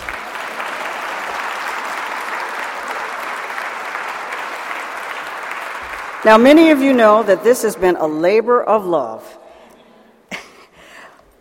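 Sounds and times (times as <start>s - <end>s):
large audience applause: 0.0s - 6.8s
speech: 6.2s - 9.4s.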